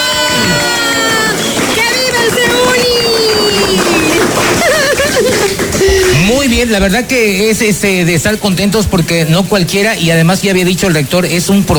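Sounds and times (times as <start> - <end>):
audience applause: 0.0 - 9.1
laughter: 0.0 - 11.7
speech: 6.6 - 11.7.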